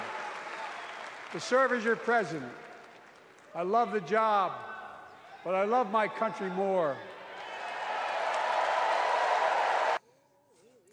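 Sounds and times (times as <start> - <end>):
crowd applauding: 0.0 - 4.6, 7.1 - 10.0
speech: 1.3 - 2.7, 3.6 - 4.7, 5.4 - 7.1.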